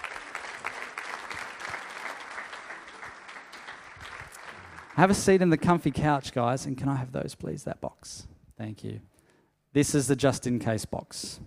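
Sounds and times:
audience applauding guests onto a stage: 0:00.0 - 0:05.5
speech: 0:05.0 - 0:09.1, 0:09.7 - 0:11.4.

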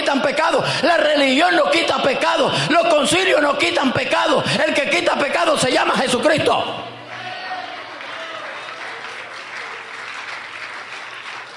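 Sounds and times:
speech: 0:00.1 - 0:06.9
audience applauding: 0:07.0 - 0:11.5.

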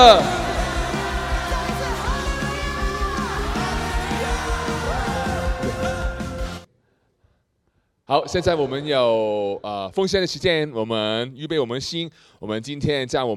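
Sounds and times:
speech: 0:00.0 - 0:00.4, 0:08.1 - 0:13.3
audience applause: 0:00.0 - 0:05.8.

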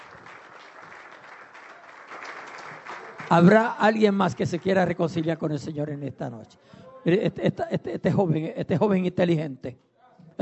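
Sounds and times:
audience applause: 0:00.0 - 0:05.4
speech: 0:03.3 - 0:10.4
laughter: 0:07.0 - 0:09.0.

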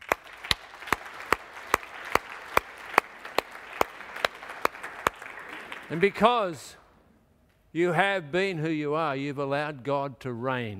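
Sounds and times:
audience applauding: 0:00.0 - 0:06.6
speech: 0:05.9 - 0:06.8, 0:07.7 - 0:10.7.

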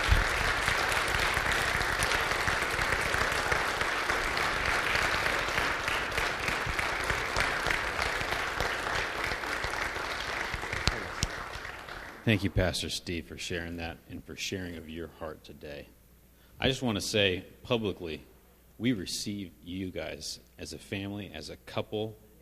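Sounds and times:
crowd clapping: 0:00.0 - 0:12.6
speech: 0:12.3 - 0:16.0, 0:16.6 - 0:22.3.

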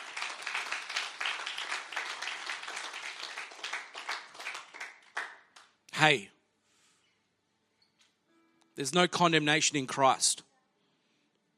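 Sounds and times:
audience applause: 0:00.0 - 0:05.6
speech: 0:06.0 - 0:06.3, 0:08.8 - 0:10.5.

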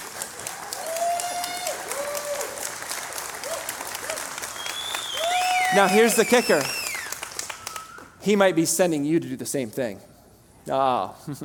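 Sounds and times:
audience clapping: 0:00.0 - 0:08.2
speech: 0:05.7 - 0:06.8, 0:08.2 - 0:11.4.

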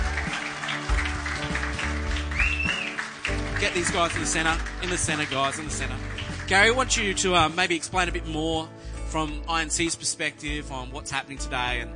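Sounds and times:
audience applause: 0:00.0 - 0:07.0
speech: 0:03.6 - 0:11.9.

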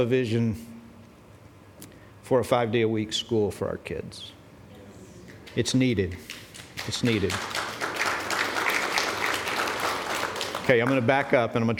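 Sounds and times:
speech: 0:00.0 - 0:00.7, 0:02.3 - 0:04.4, 0:05.5 - 0:07.6, 0:10.7 - 0:11.7
audience applause: 0:05.3 - 0:11.4.

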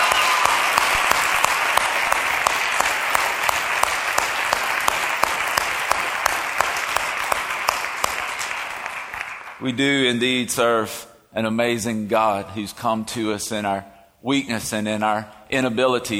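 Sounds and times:
audience clapping: 0:00.0 - 0:10.3
speech: 0:09.6 - 0:16.1.

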